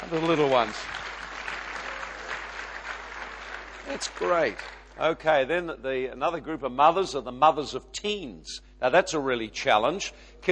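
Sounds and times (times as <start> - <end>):
speech: 0.0 - 1.1, 3.9 - 10.4
audience clapping: 0.0 - 5.0.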